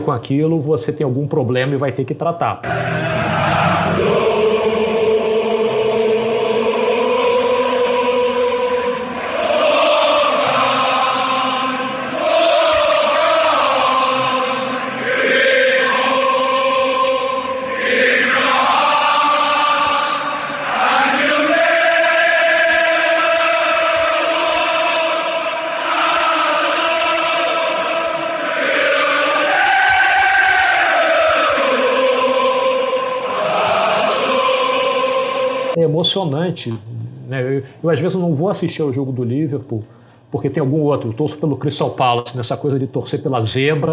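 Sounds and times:
speech: 0:00.0 - 0:04.4, 0:36.2 - 0:43.9
football crowd singing in stadium: 0:02.6 - 0:35.8.

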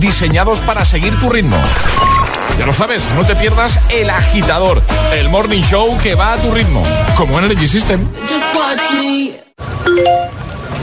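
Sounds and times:
speech: 0:00.0 - 0:10.4
Securitas Direct security alarm electronic notification chime: 0:09.9 - 0:10.4.

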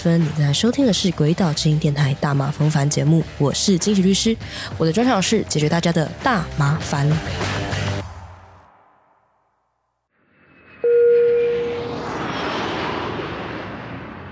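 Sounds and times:
speech: 0:00.0 - 0:07.9
steady whining tone of landing airplane: 0:10.6 - 0:13.8
airplane landing at Bangkok BKK airport: 0:10.7 - 0:14.2.

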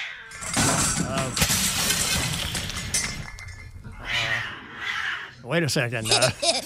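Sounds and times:
mirror glass shattering: 0:00.3 - 0:03.8
clattering impacts: 0:00.3 - 0:04.0
speech: 0:01.2 - 0:01.5, 0:05.5 - 0:06.6
laughter: 0:06.0 - 0:06.6.

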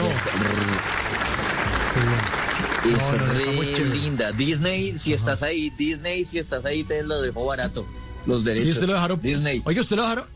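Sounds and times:
applause: 0:00.0 - 0:04.6
speech: 0:02.0 - 0:10.3.

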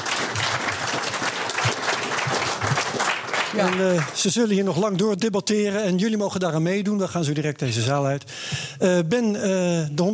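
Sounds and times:
audience applause: 0:00.0 - 0:04.6
speech: 0:03.6 - 0:10.1.

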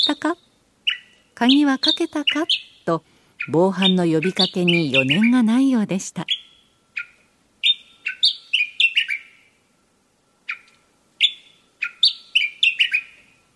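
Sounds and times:
Gray's grasshopper warbler singing: 0:00.0 - 0:09.7, 0:10.4 - 0:13.5
speech: 0:00.1 - 0:00.5, 0:01.4 - 0:06.4.

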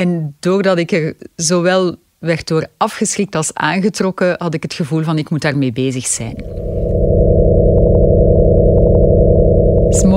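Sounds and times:
speech: 0:00.0 - 0:07.3, 0:10.0 - 0:10.1
faint flickering pulses: 0:06.1 - 0:10.1
sonified vibrations of a Sun-like star, low droning hum: 0:06.2 - 0:10.1.

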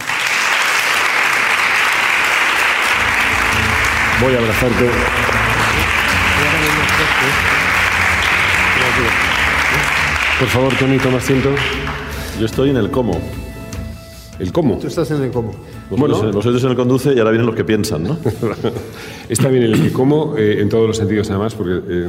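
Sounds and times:
audience applause: 0:00.0 - 0:12.5
laughter: 0:03.0 - 0:12.1, 0:17.9 - 0:19.1
speech: 0:04.2 - 0:05.4, 0:07.0 - 0:07.5, 0:09.0 - 0:13.4, 0:14.4 - 0:22.0.

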